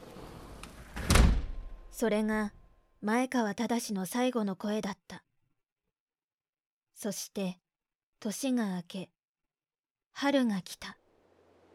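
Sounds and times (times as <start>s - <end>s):
sliding window scraping shut: 0.0s - 1.8s
sliding window thump and rattle: 0.8s - 1.8s
speech: 2.0s - 5.2s, 7.0s - 7.6s, 8.2s - 9.2s, 10.2s - 11.0s.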